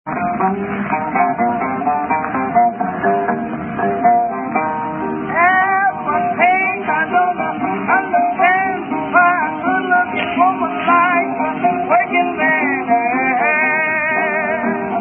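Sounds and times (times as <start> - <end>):
blues music: 0.0 - 15.0.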